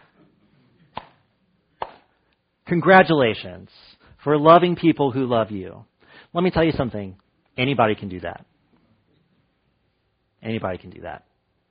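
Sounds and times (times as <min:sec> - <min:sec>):
slow sarcastic hand claps: 0:00.9 - 0:01.2, 0:01.8 - 0:02.1
speech: 0:02.7 - 0:08.5, 0:10.4 - 0:11.3.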